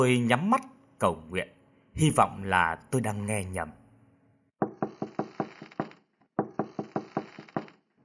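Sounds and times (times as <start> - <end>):
speech: 0.0 - 3.8
knocking on a room door: 4.6 - 7.8.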